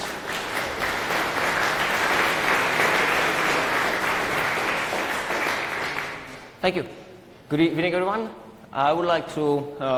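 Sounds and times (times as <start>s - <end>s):
audience applause: 0.0s - 6.5s
speech: 6.6s - 9.9s.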